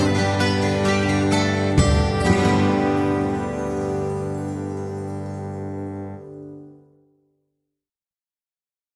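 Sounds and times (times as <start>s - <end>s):
25-string instrument: 0.0s - 6.8s.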